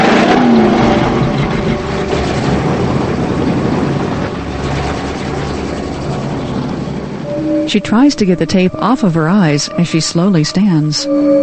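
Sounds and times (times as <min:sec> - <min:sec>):
car backing up and driving away: 0:00.0 - 0:11.4
speech: 0:07.7 - 0:11.4.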